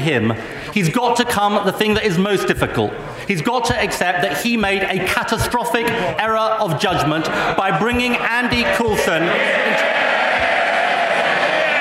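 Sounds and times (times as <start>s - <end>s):
speech: 0.0s - 10.0s
cheering and shouting from the Labour benches: 8.2s - 11.8s.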